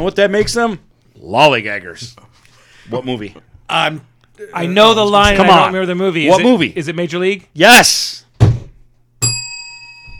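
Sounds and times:
speech: 0.0 - 8.2
bell ding: 9.2 - 10.1.

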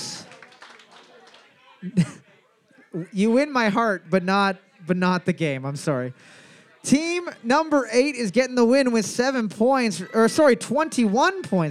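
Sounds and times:
round of applause: 0.0 - 2.0
speech: 1.8 - 2.2, 2.9 - 11.7.

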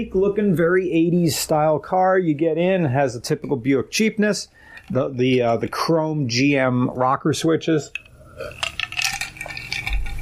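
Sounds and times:
speech: 0.0 - 8.7
drinking apple juice with ice from a thin decorative glass: 8.0 - 10.2.

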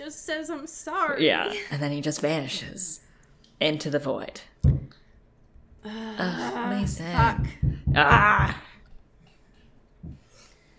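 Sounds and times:
speech: 0.1 - 4.9, 5.8 - 8.7
single dull low-pitched knock: 4.6 - 4.9, 6.8 - 8.6.

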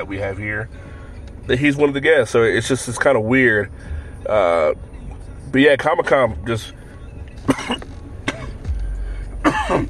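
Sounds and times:
speech: 0.0 - 0.9, 1.5 - 4.9, 5.5 - 6.8, 7.4 - 7.9
low rumble: 6.8 - 9.8
person coughing and clearing throat: 7.5 - 8.6, 9.4 - 9.8.

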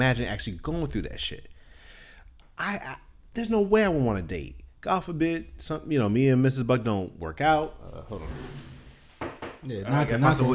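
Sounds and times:
speech: 0.0 - 1.6, 2.6 - 8.8, 9.6 - 10.5
knocking on wood: 9.2 - 9.6.

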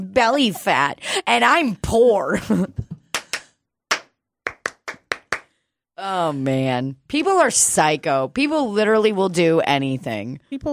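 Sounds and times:
speech: 0.2 - 2.8, 6.0 - 10.7
hands clapping: 3.0 - 5.5.

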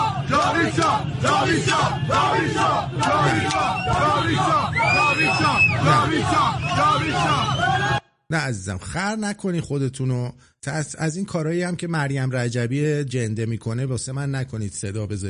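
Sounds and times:
crowd clapping while walking: 0.0 - 7.4
people shouting: 0.0 - 8.0
speech: 0.6 - 15.2.

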